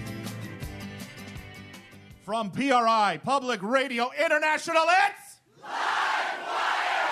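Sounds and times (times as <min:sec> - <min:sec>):
speech: 0:02.3 - 0:05.8
live audience cheering at Mississippi Studios in Portland, Oregon: 0:05.6 - 0:07.1.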